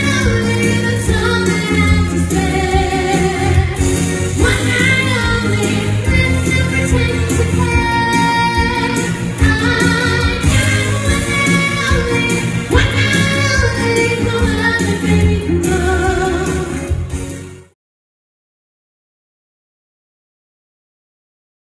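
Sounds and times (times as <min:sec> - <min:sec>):
entertainer vocals: 0:00.0 - 0:17.1.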